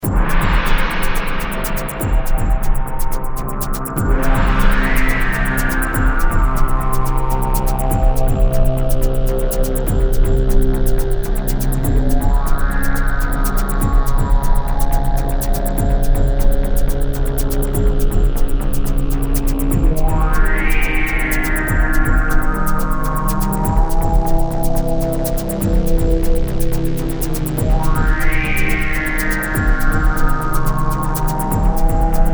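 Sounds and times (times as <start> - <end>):
battle music loop: 0.0 - 32.3.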